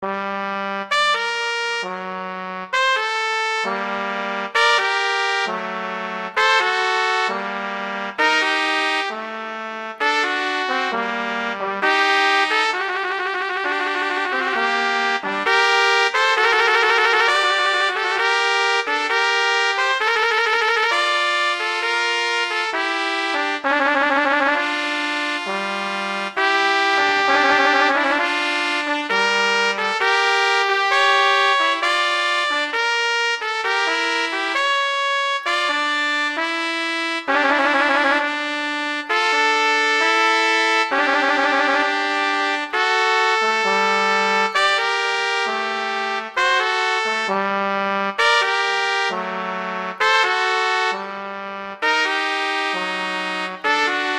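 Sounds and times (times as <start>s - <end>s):
slow classical piece: 0.0s - 54.1s.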